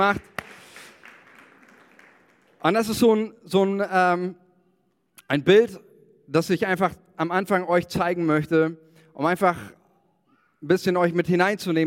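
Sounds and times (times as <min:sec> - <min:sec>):
speech: 0:00.0 - 0:00.3, 0:02.6 - 0:04.4, 0:05.3 - 0:09.8, 0:10.6 - 0:11.8
audience clapping: 0:00.0 - 0:03.0.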